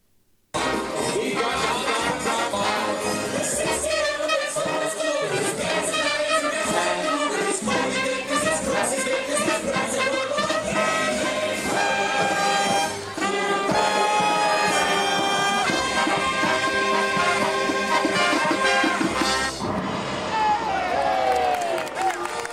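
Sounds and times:
theme park parade music with voices: 0.6 - 22.5
crowd clapping and cheering: 11.4 - 22.5.

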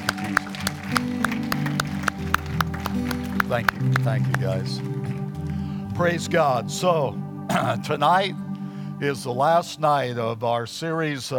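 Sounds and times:
audience clapping: 0.0 - 6.2
speech: 3.5 - 4.9, 6.0 - 8.4, 9.0 - 11.3.

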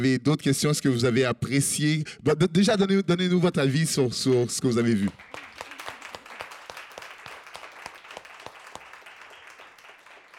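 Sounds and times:
speech: 0.0 - 5.4
audience applauding: 4.8 - 10.3.

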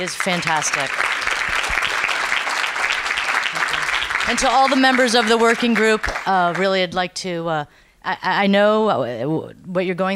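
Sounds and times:
speech: 0.0 - 1.8, 4.3 - 10.1
audience applause: 0.0 - 6.7.

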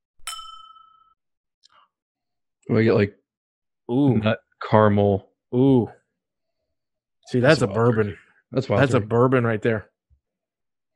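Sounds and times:
drinking glass clinking: 0.2 - 1.2
speech: 2.7 - 3.2, 3.9 - 6.0, 7.3 - 9.9.

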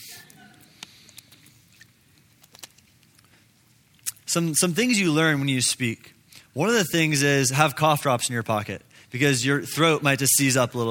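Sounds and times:
person sipping water: 0.0 - 4.3
speech: 4.4 - 10.8.

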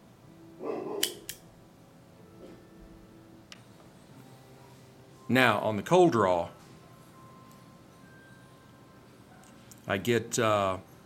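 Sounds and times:
regular guillotine blade on a Cassetti dual cutter slicing an Arturo Fuente Hemingway cigar: 1.0 - 1.4
speech: 5.3 - 6.6, 9.9 - 10.9.

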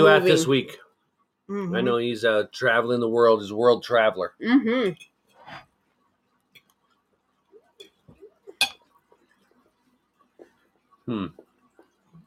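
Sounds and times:
speech: 0.0 - 0.8, 1.5 - 5.7, 11.1 - 11.4
cutlery and dishes clinking while eating dinner: 8.6 - 8.9.

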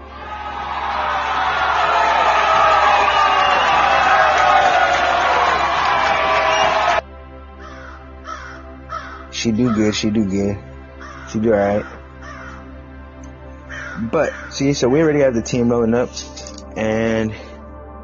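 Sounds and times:
audience applause: 0.1 - 7.0
speech: 9.4 - 10.7, 11.3 - 12.0, 14.0 - 17.4.

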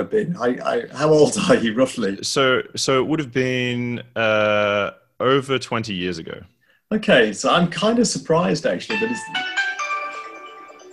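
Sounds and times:
speech: 0.0 - 9.6
phone ringing: 9.1 - 10.9.

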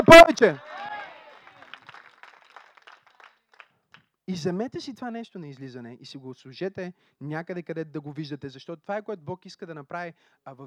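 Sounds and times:
speech: 0.0 - 0.7, 4.3 - 10.6
audience clapping: 0.0 - 4.1.

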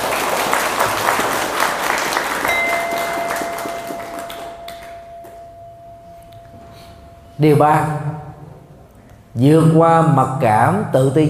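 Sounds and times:
loud applause from audience: 0.0 - 5.0
speech: 7.4 - 8.1, 9.4 - 11.2.

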